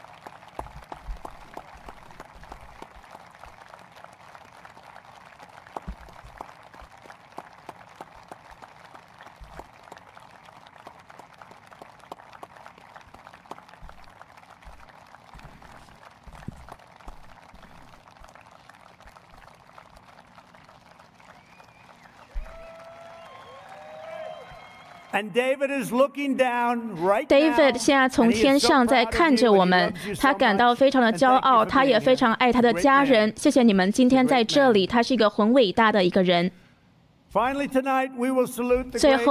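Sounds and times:
audience applause: 0.0 - 25.4, 27.3 - 33.4, 39.0 - 39.3
speech: 25.2 - 36.6, 37.3 - 39.3.

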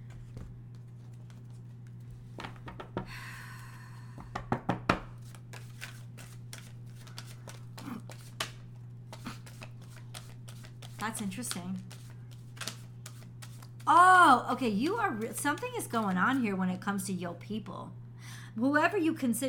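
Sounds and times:
tarot cards shuffling and rustling during a reading: 0.0 - 2.8, 5.0 - 13.9
faint steady hum: 0.0 - 19.4
speech: 11.0 - 12.0, 13.9 - 18.0, 18.6 - 19.4.

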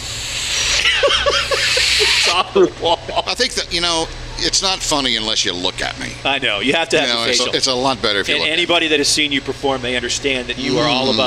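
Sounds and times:
person imitating a cat hissing: 0.0 - 2.6
short rising-and-falling vocal whines: 0.0 - 2.7
laughter: 0.8 - 3.4
speech: 2.0 - 11.2.

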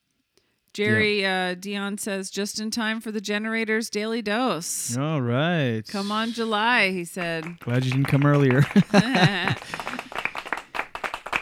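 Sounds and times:
vocal cheer: 0.8 - 1.1, 4.9 - 6.8, 7.6 - 10.1
speech: 0.8 - 9.9
laughter: 0.9 - 1.1, 5.0 - 10.6
small group clapping: 6.9 - 11.3.

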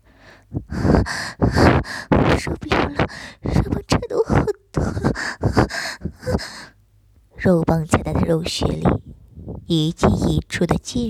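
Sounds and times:
heavy panting breaths: 0.1 - 6.8
speech: 7.5 - 9.1, 9.7 - 11.0.

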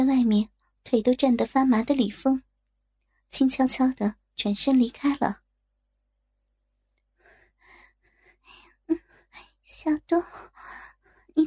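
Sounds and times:
speech: 0.0 - 2.5, 3.3 - 5.4, 9.8 - 10.8
soft breathing: 7.1 - 11.4.

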